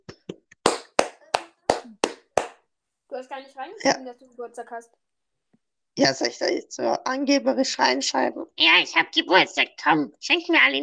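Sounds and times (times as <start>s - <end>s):
hand clapping: 0.0s - 2.6s
speech: 3.2s - 5.1s, 6.0s - 10.8s.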